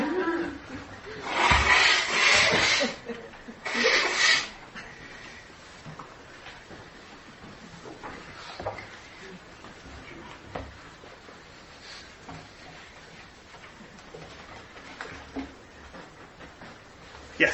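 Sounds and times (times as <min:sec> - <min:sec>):
loud nose blowing into a tissue: 0:01.2 - 0:03.0, 0:03.6 - 0:04.6.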